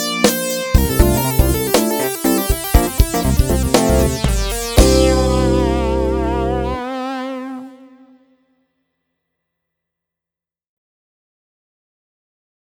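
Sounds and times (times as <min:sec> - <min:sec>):
band playing: 0:00.0 - 0:07.2
short synth solo: 0:00.0 - 0:07.7.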